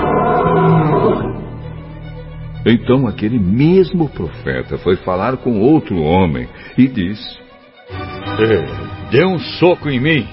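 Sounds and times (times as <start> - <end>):
lion roaring as a sound effect in a story: 0.0 - 1.8
speech: 2.7 - 10.3.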